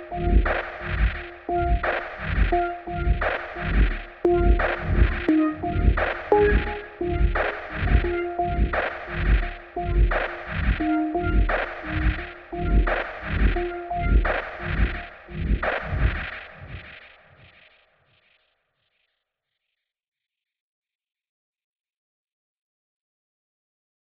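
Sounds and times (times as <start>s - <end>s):
pulse tone: 0.0s - 15.1s.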